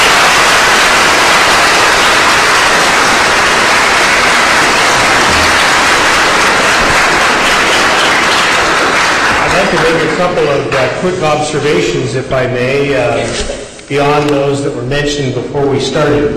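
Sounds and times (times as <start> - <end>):
audience applause: 0.0 - 11.1
speech: 9.7 - 16.3.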